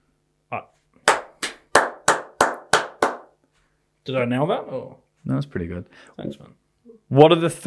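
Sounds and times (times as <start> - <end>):
speech: 0.5 - 0.8, 4.0 - 7.6
hand clapping: 1.0 - 3.4.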